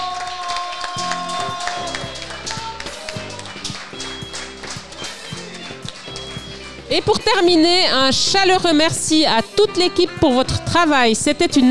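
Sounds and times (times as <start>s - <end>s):
audience clapping: 0.0s - 7.8s
music playing: 0.1s - 11.6s
speech: 6.9s - 11.6s.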